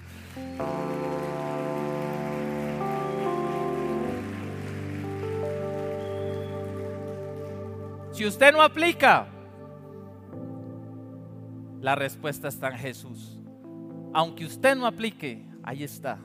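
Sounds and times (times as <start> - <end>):
audience applause: 0.0 - 8.2
speech: 0.4 - 0.8, 8.2 - 9.4, 11.8 - 13.4, 14.1 - 16.2.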